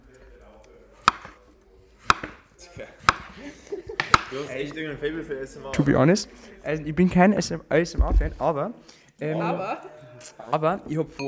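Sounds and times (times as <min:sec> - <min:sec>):
knife chopping potatoes on a board: 0:01.0 - 0:01.4, 0:02.0 - 0:02.4, 0:03.0 - 0:03.4, 0:04.0 - 0:04.5
speech: 0:02.8 - 0:11.2
laughter: 0:03.2 - 0:04.8, 0:09.2 - 0:10.5.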